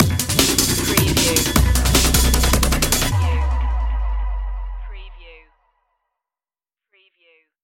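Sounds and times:
dark heavy electronica urban assault stinger: 0:00.0 - 0:05.2.

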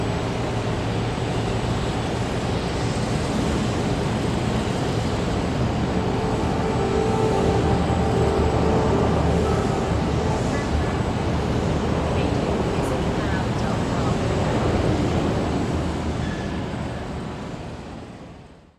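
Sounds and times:
urban harbor marina ambience: 0:00.0 - 0:18.5
boat horns in a marina harbor: 0:05.4 - 0:13.6.

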